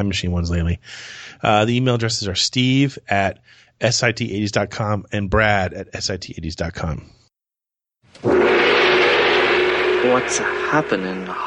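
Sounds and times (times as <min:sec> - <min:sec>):
speech: 0:00.0 - 0:07.2, 0:08.1 - 0:08.6, 0:10.0 - 0:11.4
gong being struck: 0:08.2 - 0:11.4
steady humming tone: 0:08.2 - 0:11.4.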